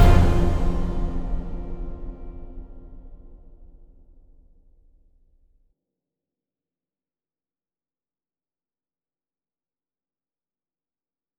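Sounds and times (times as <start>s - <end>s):
orchestral piece: 0.0s - 3.4s.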